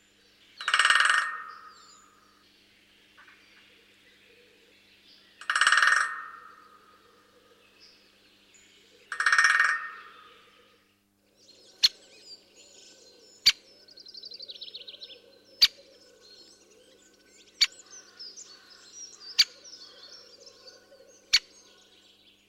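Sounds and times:
great spotted woodpecker drumming: 0.6 - 1.6, 5.4 - 6.7, 9.1 - 10.1
great spotted woodpecker calls: 0.6 - 2.2, 5.4 - 7.4, 9.0 - 10.5, 13.4 - 13.8, 17.6 - 21.8.

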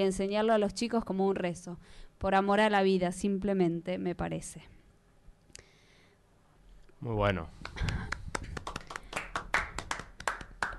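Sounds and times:
speech: 0.0 - 4.8, 7.0 - 8.2
small group applauding: 7.6 - 10.7.

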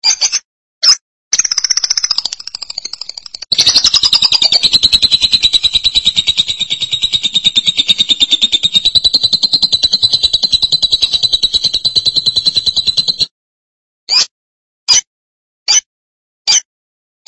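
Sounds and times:
lovebird chatter: 1.4 - 13.3.

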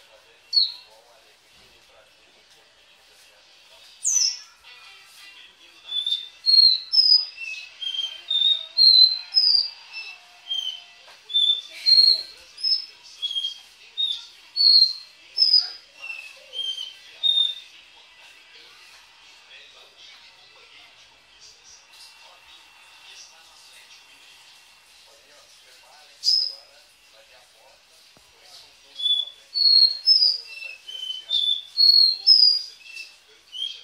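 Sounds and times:
Belgian canary singing: 0.4 - 0.9, 4.0 - 17.8, 26.2 - 26.7, 28.9 - 33.8.

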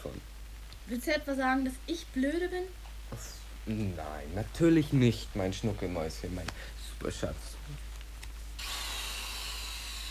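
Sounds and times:
speech: 0.9 - 7.9
power drill drilling: 8.6 - 10.1.

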